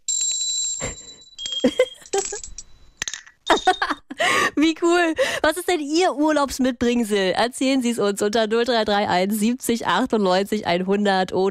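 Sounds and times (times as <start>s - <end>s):
small high-quality handcrafted bells ringing: 0.0s - 4.1s
speech: 4.8s - 11.4s.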